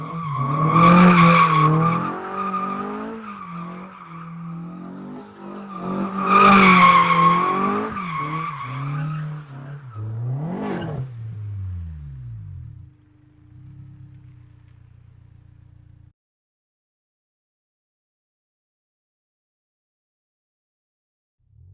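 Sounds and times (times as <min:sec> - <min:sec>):
Honda S2000 circling and driving by: 0:00.0 - 0:16.1.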